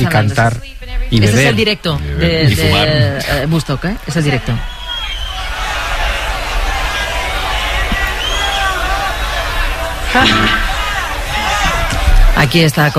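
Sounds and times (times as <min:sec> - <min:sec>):
speech: 0:00.0 - 0:04.7, 0:10.1 - 0:10.7, 0:12.4 - 0:12.9
concert audience applauding and cheering: 0:03.5 - 0:12.4.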